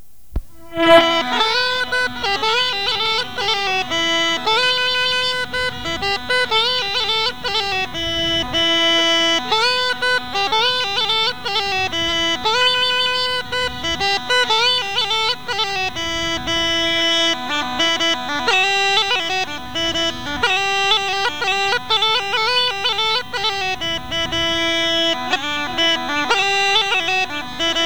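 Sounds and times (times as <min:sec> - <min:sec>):
group playing Rhodope gaida bagpipes: 0:00.6 - 0:27.8.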